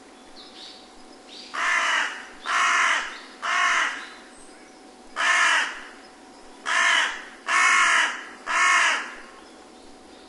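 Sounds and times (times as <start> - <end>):
carrion crow giving harsh raspy caws: 1.6 - 4.1, 5.2 - 6.0, 6.6 - 9.3.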